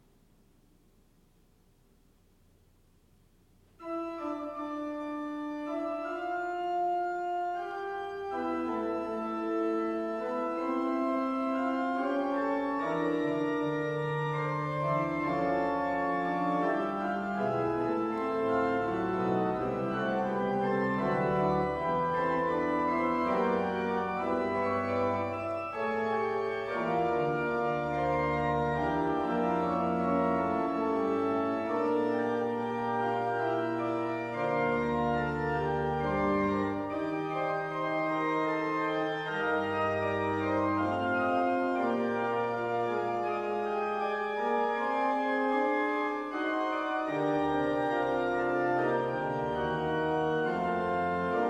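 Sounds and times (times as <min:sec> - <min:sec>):
organ fugue: 0:02.3 - 0:51.4.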